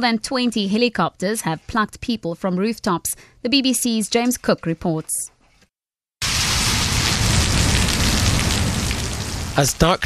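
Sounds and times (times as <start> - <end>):
speech: 0.0 - 5.3, 9.6 - 10.0
heavy rain pouring down: 6.2 - 10.0.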